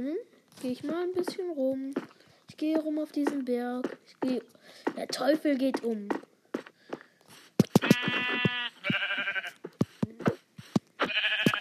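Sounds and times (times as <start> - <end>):
speech: 0.0 - 6.2
short thumps: 0.6 - 11.5
sharp clicking taps: 0.7 - 11.5
goat bleating in a video game: 7.7 - 9.8, 11.0 - 11.5.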